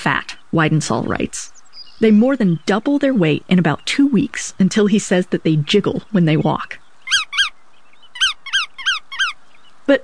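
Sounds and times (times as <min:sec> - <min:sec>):
speech: 0:00.0 - 0:06.8, 0:09.9 - 0:10.0
bar-tailed godwit calls: 0:06.1 - 0:09.4.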